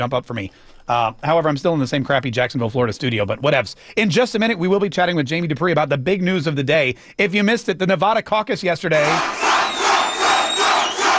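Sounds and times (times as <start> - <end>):
speech: 0.0 - 9.5
crowd of fans cheering: 9.0 - 11.1.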